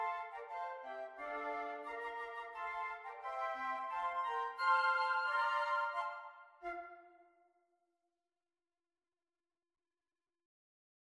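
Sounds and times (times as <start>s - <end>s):
flute: 0.0s - 7.4s.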